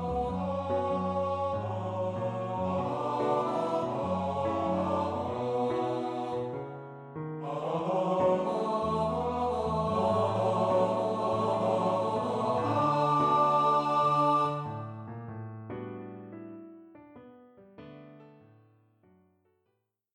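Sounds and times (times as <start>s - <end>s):
male voice choir singing a two-part song: 0.0s - 6.7s, 7.4s - 14.9s.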